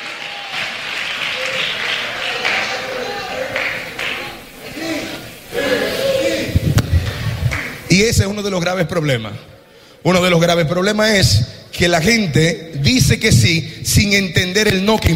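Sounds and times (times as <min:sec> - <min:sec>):
audience applause: 0:00.0 - 0:07.9
speech: 0:07.9 - 0:15.1.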